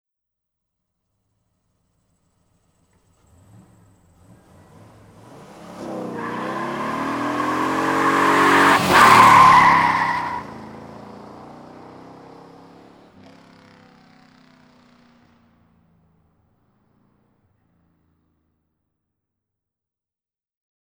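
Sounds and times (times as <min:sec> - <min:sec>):
Pontiac tyres screeching: 0:04.5 - 0:10.7.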